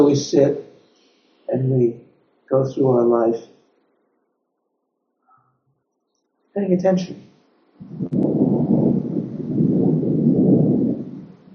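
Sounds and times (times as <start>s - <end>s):
speech: 0.0s - 0.7s, 1.5s - 3.6s, 6.6s - 8.2s
thunderclap overhead: 7.8s - 11.5s.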